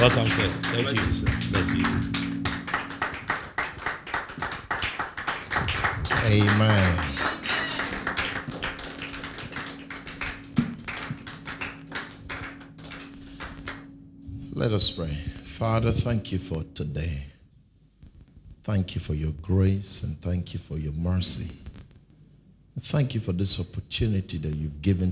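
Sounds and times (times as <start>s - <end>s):
speech: 0.0s - 2.2s, 6.2s - 7.3s, 14.6s - 17.3s, 18.6s - 21.6s, 22.8s - 25.0s
audience clapping to welcome a speaker: 0.0s - 13.9s.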